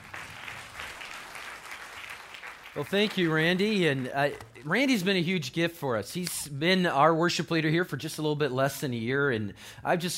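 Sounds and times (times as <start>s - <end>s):
audience clapping: 0.0s - 4.8s
speech: 2.8s - 10.1s.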